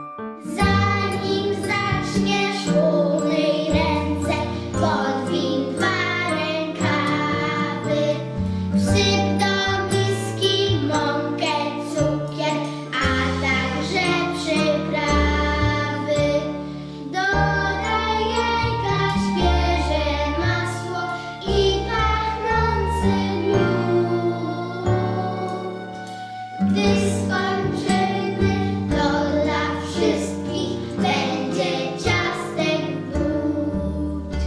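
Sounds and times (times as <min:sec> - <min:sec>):
children's voices: 0:00.4 - 0:34.4.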